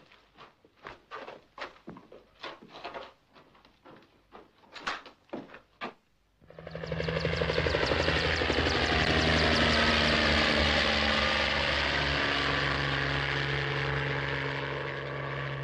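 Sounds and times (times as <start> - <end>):
helicopter hovering: 6.4 - 15.6.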